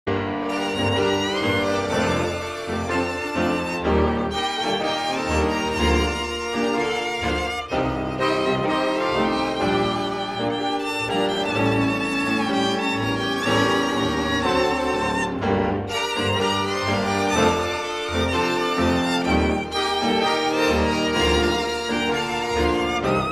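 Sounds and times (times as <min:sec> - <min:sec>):
beautiful tango music: 0:00.1 - 0:23.3.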